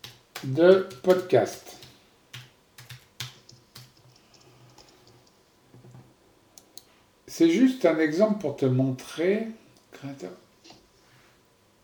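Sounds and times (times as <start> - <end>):
typing on a computer keyboard: 0.0 - 5.4
low hum: 0.0 - 11.8
speech: 0.4 - 1.8, 7.4 - 10.4.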